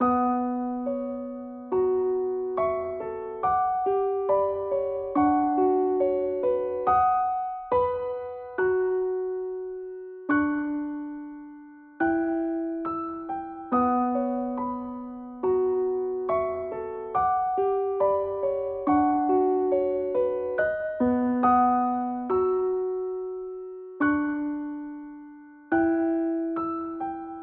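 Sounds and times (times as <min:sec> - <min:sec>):
dark lullaby piano loop: 0:00.0 - 0:27.4.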